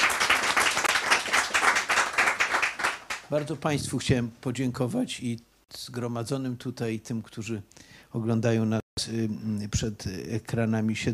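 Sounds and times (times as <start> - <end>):
audience applause: 0.0 - 3.3
speech: 3.3 - 11.1.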